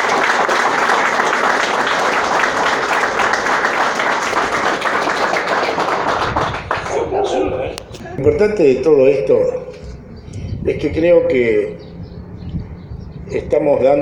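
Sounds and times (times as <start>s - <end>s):
applause: 0.0s - 7.1s
speech: 8.2s - 9.6s, 10.6s - 11.8s, 13.3s - 14.0s.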